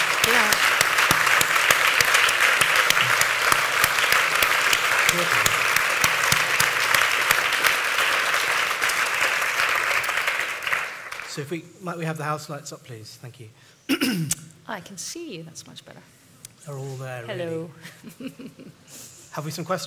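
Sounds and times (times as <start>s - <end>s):
audience applause: 0.0s - 11.4s
speech: 11.4s - 19.8s.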